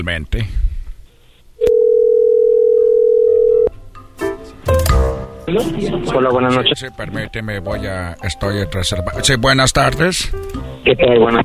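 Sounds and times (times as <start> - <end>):
speech: 0.0 - 0.6, 5.5 - 11.4
telephone dial tone of outgoing call: 1.7 - 3.7.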